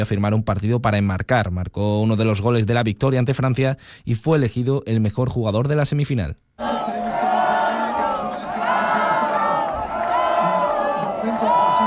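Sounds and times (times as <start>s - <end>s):
speech: 0.0s - 6.7s
crowd ovation: 6.6s - 11.8s.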